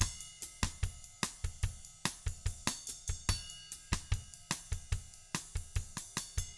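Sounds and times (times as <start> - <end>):
bossa nova drums: 0.0 - 6.5.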